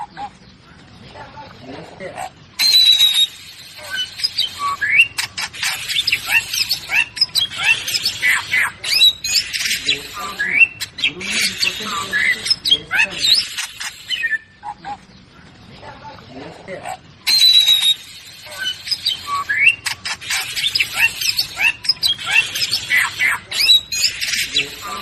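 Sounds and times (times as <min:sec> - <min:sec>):
birds chirping and squawking: 0:00.0 - 0:25.0
bird whistling: 0:02.6 - 0:14.7, 0:17.2 - 0:25.0.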